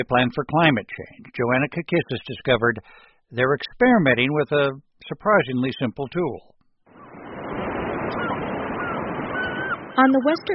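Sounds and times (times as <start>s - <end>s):
speech: 0.0s - 6.5s, 10.0s - 10.5s
surf off a giant sandbar on the North Sea coast of the Netherlands: 7.0s - 10.0s.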